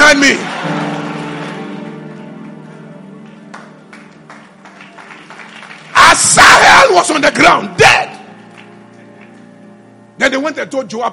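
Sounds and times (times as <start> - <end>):
audience clapping: 0.0 - 7.2, 8.3 - 9.7
speech: 0.2 - 1.0, 7.0 - 7.8, 10.2 - 11.1.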